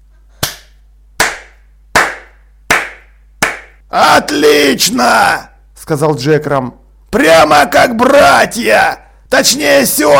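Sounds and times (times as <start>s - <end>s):
slow measured hand claps: 0.4s - 3.8s
speech: 3.9s - 10.1s.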